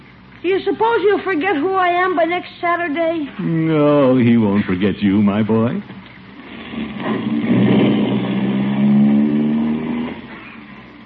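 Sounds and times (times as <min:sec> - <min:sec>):
speech: 0:00.4 - 0:06.0
car engine running: 0:04.3 - 0:11.0.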